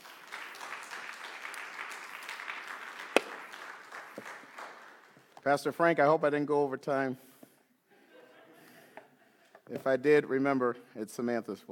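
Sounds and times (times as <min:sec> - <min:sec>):
audience applause: 0:00.0 - 0:05.3
speech: 0:05.4 - 0:07.3, 0:09.8 - 0:11.7.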